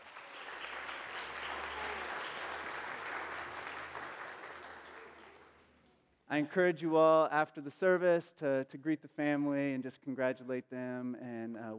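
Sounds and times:
congregation applause after a child's dedication in a church service: 0:00.0 - 0:06.0
speech: 0:06.3 - 0:11.7.

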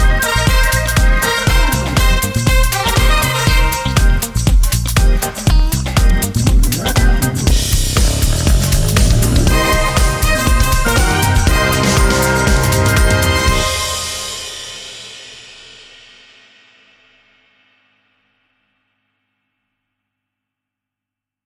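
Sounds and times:
funk music: 0:00.0 - 0:15.2.

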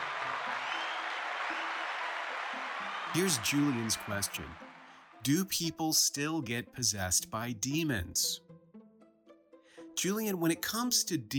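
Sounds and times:
audience applause: 0:00.0 - 0:05.2
speech: 0:03.1 - 0:04.6, 0:05.2 - 0:08.4, 0:10.0 - 0:11.3.

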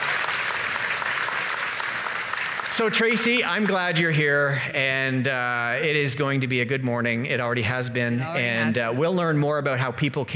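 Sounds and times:
crowd applauding and cheering: 0:00.0 - 0:04.5
speech: 0:02.7 - 0:10.3.

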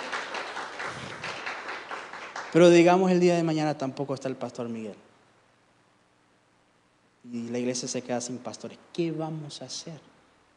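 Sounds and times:
crowd applauding: 0:00.0 - 0:03.0
speech: 0:02.5 - 0:05.1, 0:07.3 - 0:10.1.

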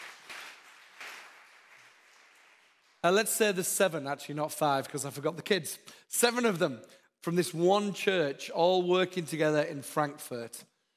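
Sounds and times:
audience applause: 0:00.0 - 0:03.1
speech: 0:03.0 - 0:10.7.

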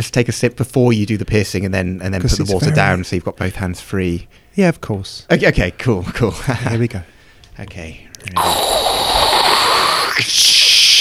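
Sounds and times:
speech: 0:00.0 - 0:08.8, 0:10.2 - 0:10.5
blowtorch caramelizing a crème brûlée: 0:08.4 - 0:10.9.

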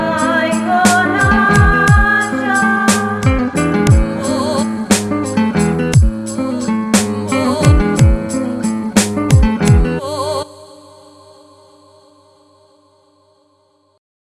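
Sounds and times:
Croatian beat at 118 bpm: 0:00.2 - 0:10.0.

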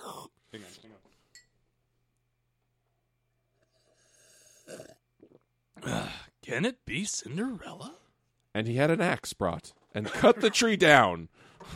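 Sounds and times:
voice imitating someone sipping coffee: 0:03.6 - 0:06.2
speech: 0:06.5 - 0:11.7.

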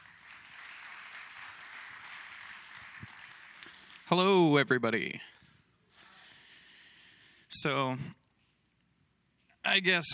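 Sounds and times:
crowd applauding: 0:00.0 - 0:04.4
speech: 0:04.1 - 0:05.3, 0:07.6 - 0:08.2, 0:09.7 - 0:10.1.

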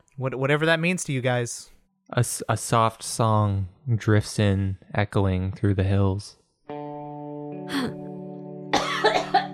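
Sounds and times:
speech: 0:00.2 - 0:06.4
person coughing and choking: 0:08.7 - 0:09.5.

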